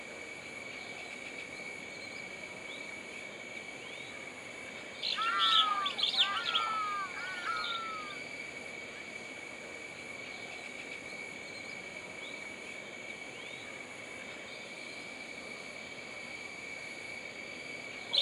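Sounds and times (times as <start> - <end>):
jungle ambience: 0.0 - 18.2.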